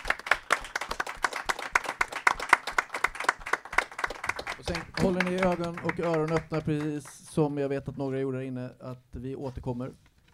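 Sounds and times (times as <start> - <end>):
small group clapping: 0.0 - 7.7
speech: 4.6 - 10.0.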